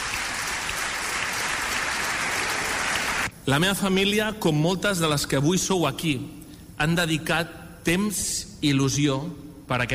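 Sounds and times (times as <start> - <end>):
audience applause: 0.0 - 3.3
speech: 3.4 - 9.9.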